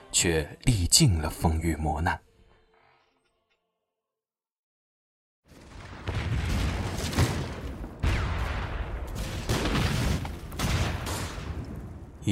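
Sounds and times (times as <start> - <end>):
speech: 0.1 - 2.3
gunfire: 5.5 - 12.0
rumbling artillery at Wanping county town in Beiping: 5.5 - 12.3.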